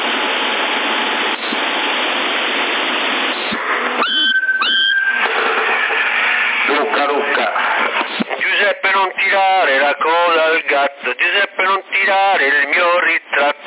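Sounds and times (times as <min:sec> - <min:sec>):
CB radio static hiss while being tuned in Sassari: 0:00.0 - 0:13.6
warbling sliding whistles from a CB radio dial: 0:04.0 - 0:05.3
speech: 0:09.4 - 0:13.5.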